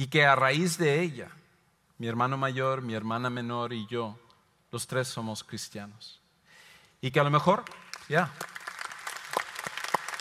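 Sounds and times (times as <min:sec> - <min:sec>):
speech: 0:00.0 - 0:01.4, 0:02.0 - 0:06.2, 0:07.0 - 0:08.6
audience applauding: 0:07.6 - 0:10.2.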